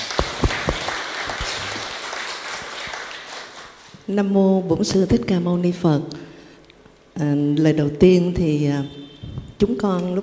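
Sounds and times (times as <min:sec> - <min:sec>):
audience applause: 0:00.0 - 0:04.0
speech: 0:04.1 - 0:06.2, 0:07.2 - 0:10.2.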